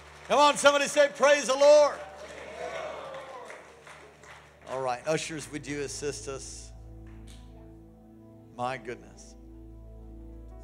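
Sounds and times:
audience clapping: 0.0 - 5.7, 7.0 - 7.5
speech: 0.3 - 2.1, 4.7 - 6.6, 8.6 - 9.3.

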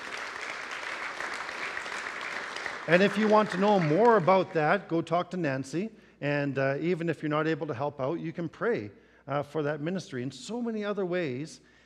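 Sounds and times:
church congregation clapping: 0.0 - 4.9
speech: 2.9 - 11.7.

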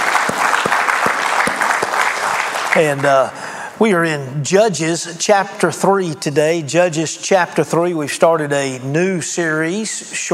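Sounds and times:
audience applauding: 0.0 - 3.2
speech: 2.8 - 10.3.

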